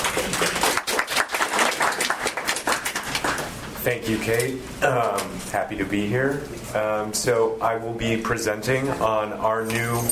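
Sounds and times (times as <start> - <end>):
audience applause: 0.0 - 3.6
speech: 3.9 - 10.0.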